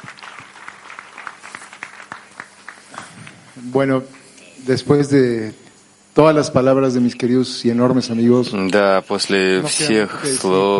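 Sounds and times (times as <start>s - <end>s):
applause: 0.0s - 3.7s
speech: 3.6s - 5.6s, 6.2s - 10.7s.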